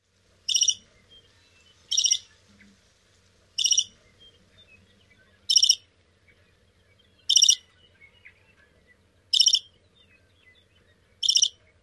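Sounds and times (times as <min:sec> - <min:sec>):
bird song: 0:00.4 - 0:11.8.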